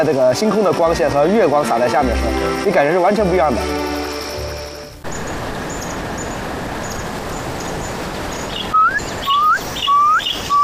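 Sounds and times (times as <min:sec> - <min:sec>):
speech: 0:00.0 - 0:04.0
rapid bird calls at night: 0:03.9 - 0:10.6.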